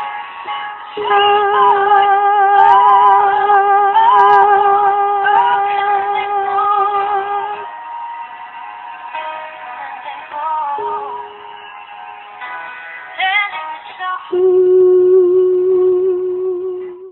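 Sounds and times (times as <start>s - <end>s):
soprano singing: 0.9s - 7.7s, 9.8s - 11.6s, 13.1s - 17.0s.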